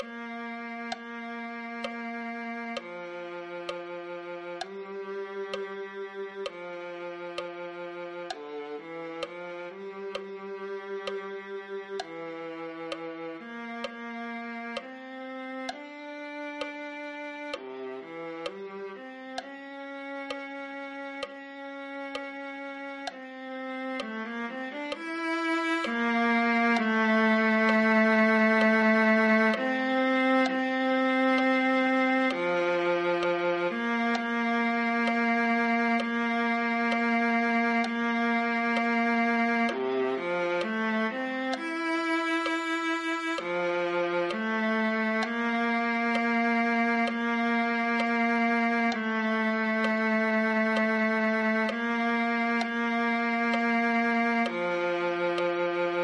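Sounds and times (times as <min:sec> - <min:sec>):
viola: 0:00.0 - 0:56.0.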